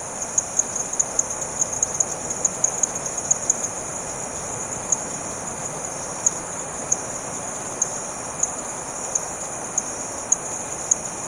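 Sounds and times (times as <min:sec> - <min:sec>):
frogs calling in late evening in Maranhao village on the Brazilian coast: 0:00.0 - 0:11.2
insects chirping in late evening in Maranhao village on the Brazilian coast: 0:00.0 - 0:11.2.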